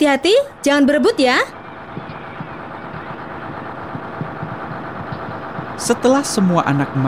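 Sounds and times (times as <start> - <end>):
speech: 0.0 - 1.6, 5.8 - 7.0
bus engine running: 0.0 - 7.0
faint rhythmic knocks: 0.0 - 7.0.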